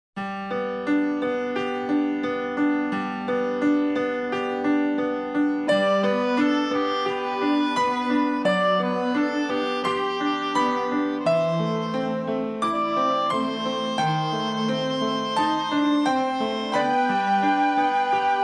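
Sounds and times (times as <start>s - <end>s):
easy listening and classical music: 0.2s - 18.4s.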